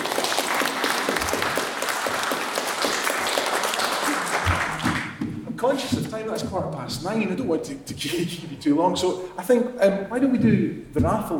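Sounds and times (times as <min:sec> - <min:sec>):
audience applause: 0:00.0 - 0:05.2
speech: 0:05.7 - 0:11.3.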